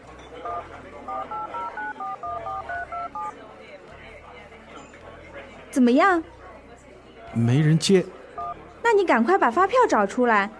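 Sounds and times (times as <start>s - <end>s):
mobile phone two-tone keypad beeps dialing a number: 0.4s - 3.3s
speech: 5.8s - 6.4s, 7.4s - 8.2s, 8.9s - 10.5s.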